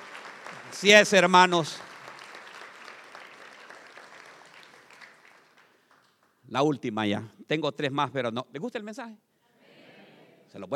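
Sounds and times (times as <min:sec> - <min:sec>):
audience applause: 0:00.0 - 0:06.3
speech: 0:00.7 - 0:01.9, 0:06.5 - 0:09.3, 0:10.5 - 0:10.7.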